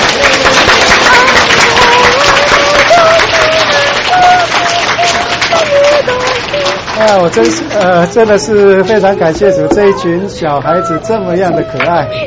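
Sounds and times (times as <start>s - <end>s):
audience applause: 0.0s - 10.0s
speech: 7.1s - 12.2s.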